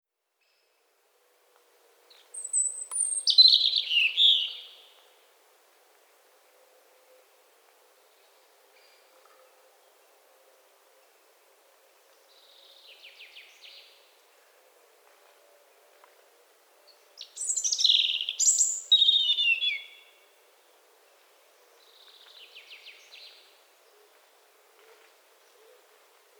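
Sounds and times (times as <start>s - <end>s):
European robin song: 2.1s - 5.0s, 17.2s - 20.3s.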